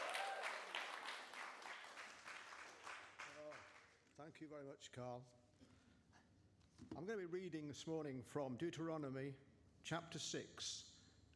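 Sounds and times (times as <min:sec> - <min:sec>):
faint audience applause: 0:00.0 - 0:04.0
speech: 0:04.2 - 0:05.4, 0:06.9 - 0:10.9.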